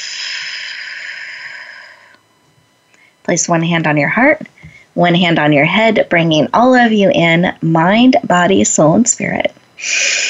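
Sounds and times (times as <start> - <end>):
slow exhale through pursed lips: 0.0 - 2.2, 9.8 - 10.2
speech: 3.2 - 10.2.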